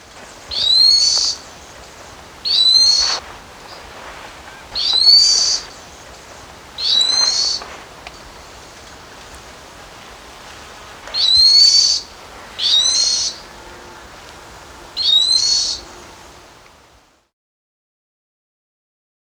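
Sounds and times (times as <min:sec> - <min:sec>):
White-banded Tyrannulet calling in South America: 0:00.0 - 0:17.0.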